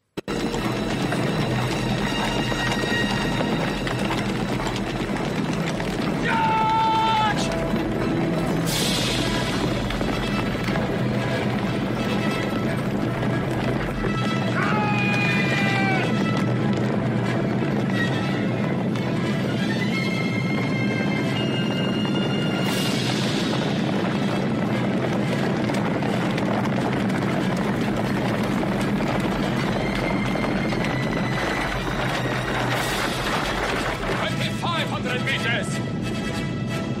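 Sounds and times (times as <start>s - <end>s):
galloping horses in a reenacted cavalry charge: 0.0s - 36.9s
horses whinnying: 0.4s - 17.0s, 26.0s - 34.3s
voices: 6.1s - 7.7s, 34.0s - 35.8s.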